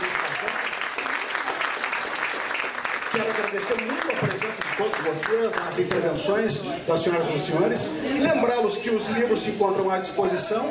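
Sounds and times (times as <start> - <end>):
audience applause: 0.0 - 6.0
speech: 3.1 - 10.7.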